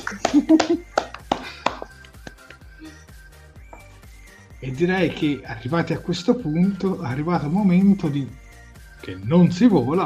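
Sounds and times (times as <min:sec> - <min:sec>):
laughter: 0:00.0 - 0:01.6
applause, hands clapping: 0:00.0 - 0:02.7
speech: 0:00.1 - 0:00.9, 0:04.8 - 0:08.4, 0:09.0 - 0:10.0.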